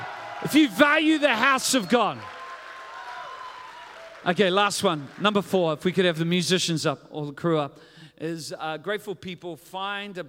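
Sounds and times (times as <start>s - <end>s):
audience clapping: 0.0s - 5.7s
speech: 0.4s - 2.4s, 4.2s - 10.2s.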